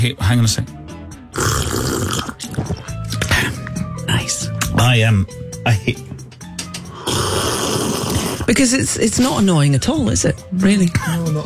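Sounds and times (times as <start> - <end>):
speech: 0.0 - 1.6, 4.3 - 6.1, 8.5 - 11.4
person slurping a drink: 1.4 - 3.2, 6.9 - 8.5.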